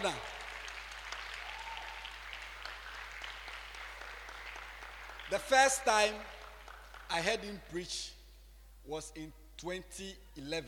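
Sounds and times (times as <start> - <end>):
speech: 0.0 - 0.4, 5.3 - 6.4, 7.1 - 8.2, 8.8 - 10.6
audience clapping for the bishop: 0.0 - 7.6.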